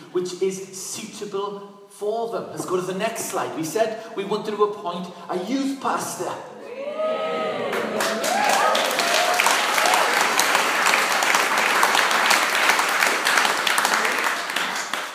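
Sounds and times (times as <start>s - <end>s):
speech: 0.1s - 8.2s
audience clapping: 7.5s - 15.1s.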